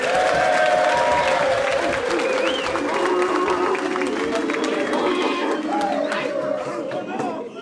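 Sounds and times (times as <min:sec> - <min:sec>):
live studio audience applauding and cheering at Fresno State University: 0:00.0 - 0:07.2.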